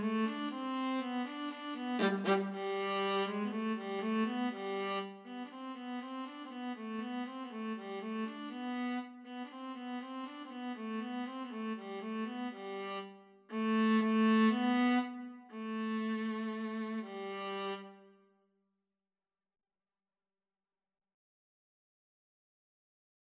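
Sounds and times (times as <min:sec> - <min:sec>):
viola: 0:00.0 - 0:18.0
cello: 0:00.0 - 0:18.1.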